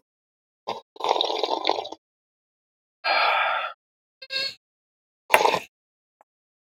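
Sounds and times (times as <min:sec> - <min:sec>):
person sipping coffee: 0:00.7 - 0:02.0, 0:05.3 - 0:05.7.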